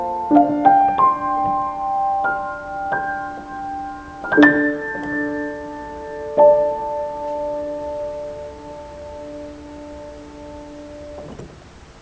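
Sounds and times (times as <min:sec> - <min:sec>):
solo piano piece: 0:00.0 - 0:12.0.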